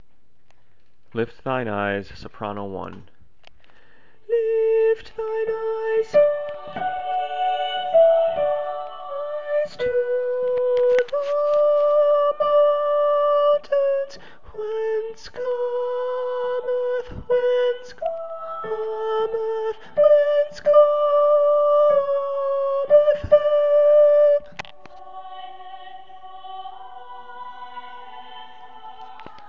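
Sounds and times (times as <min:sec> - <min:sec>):
soprano voice: 0:04.3 - 0:29.4.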